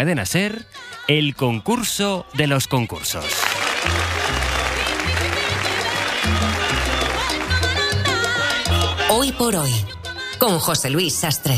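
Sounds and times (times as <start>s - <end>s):
speech: 0.0s - 4.2s, 9.2s - 11.5s
applause: 3.2s - 8.4s.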